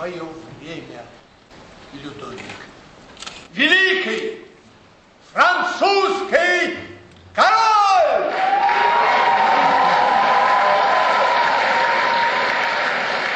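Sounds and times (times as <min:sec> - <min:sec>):
speech: 0:00.0 - 0:02.8, 0:03.5 - 0:04.4, 0:05.3 - 0:07.7
person shouting: 0:07.4 - 0:08.3
theatre audience applause and cheering at the end of a play about Molière at the Maly Theatre: 0:07.9 - 0:13.3.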